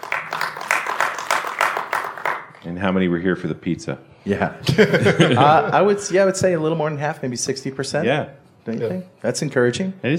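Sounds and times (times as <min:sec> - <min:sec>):
audience clapping: 0:00.0 - 0:02.6
speech: 0:02.6 - 0:10.1
laughter: 0:04.3 - 0:06.0.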